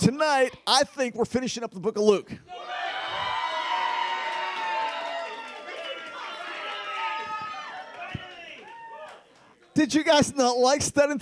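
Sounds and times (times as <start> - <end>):
speech: 0.0 - 3.0, 9.8 - 11.1
audience cheering: 2.5 - 9.3.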